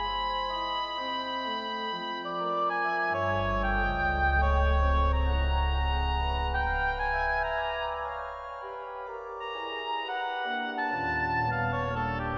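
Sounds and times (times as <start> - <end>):
oboe organ: 0.0 - 12.3.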